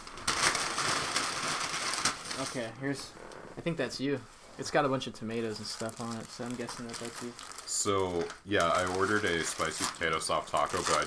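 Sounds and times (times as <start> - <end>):
food packaging crinkling: 0.0 - 2.6, 5.5 - 11.0
speech: 2.4 - 11.0.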